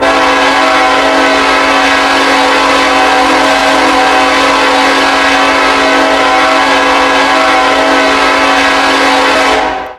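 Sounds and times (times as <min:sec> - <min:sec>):
horn: 0:00.0 - 0:09.9.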